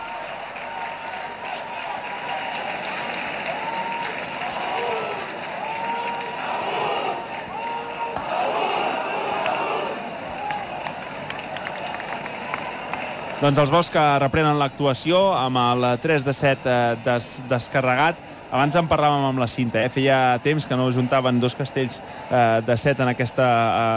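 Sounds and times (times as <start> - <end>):
people clapping hands: 0.0 - 14.6
speech: 13.4 - 23.9.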